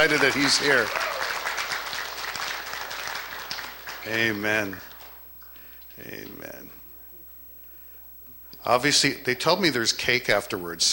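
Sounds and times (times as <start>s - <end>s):
speech: 0.0s - 1.2s, 4.0s - 4.9s, 6.0s - 6.8s, 8.6s - 10.9s
crowd clapping: 0.0s - 5.3s.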